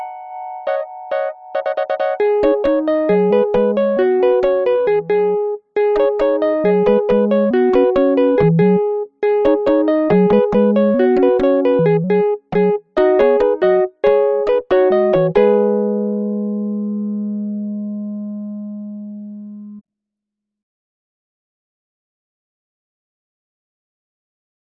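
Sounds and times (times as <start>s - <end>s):
elevator music: 0.5s - 19.8s.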